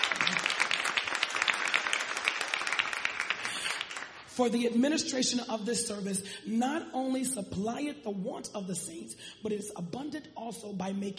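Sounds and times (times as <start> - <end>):
audience clapping hands: 0.0 - 4.3
speech: 4.4 - 11.1.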